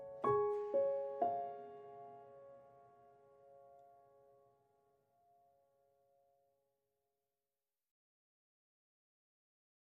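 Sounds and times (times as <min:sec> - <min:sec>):
piano: 0:00.0 - 0:06.6.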